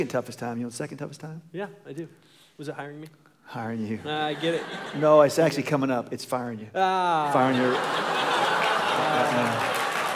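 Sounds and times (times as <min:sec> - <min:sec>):
speech: 0:00.0 - 0:08.4, 0:09.0 - 0:09.8
laughter: 0:03.9 - 0:05.8, 0:07.1 - 0:10.1
audience clapping: 0:07.4 - 0:10.1.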